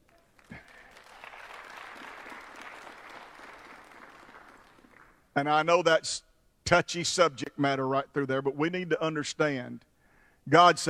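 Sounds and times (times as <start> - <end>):
audience applause: 0.0 - 5.2
speech: 5.4 - 10.8.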